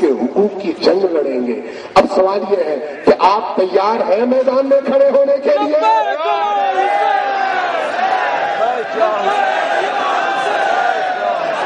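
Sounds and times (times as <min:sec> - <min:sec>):
speech: 0:00.4 - 0:06.2
crowd chanting religious slogans: 0:06.1 - 0:11.6.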